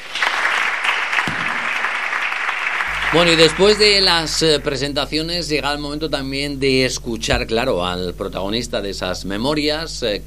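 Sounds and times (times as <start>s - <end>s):
audience applause: 0.0s - 4.8s
speech: 3.1s - 10.2s.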